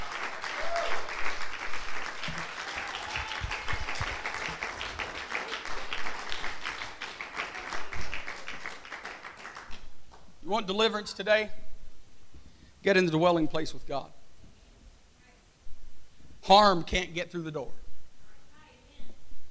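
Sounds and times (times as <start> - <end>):
crowd clapping: 0.0 - 10.2
speech: 10.5 - 11.6, 12.8 - 14.2, 16.5 - 17.8.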